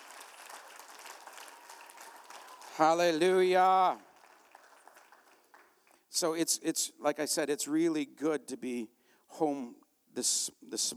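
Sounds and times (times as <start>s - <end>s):
audience hand clapping: 0.0s - 6.1s
speech: 2.8s - 4.1s, 6.2s - 10.9s.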